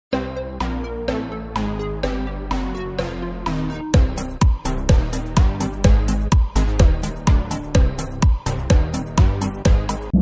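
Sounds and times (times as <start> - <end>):
ten-second countdown in-game music: 0.1 - 10.1.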